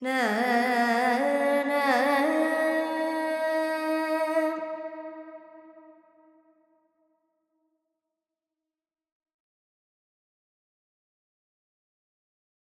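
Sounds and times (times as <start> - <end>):
Carnatic female vocal alaps in Dorian: 0.0 - 5.3.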